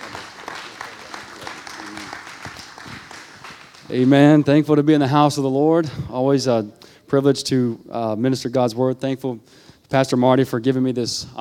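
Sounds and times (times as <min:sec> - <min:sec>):
church congregation applauding to welcome a speaker: 0:00.0 - 0:04.6
speech: 0:03.9 - 0:11.3.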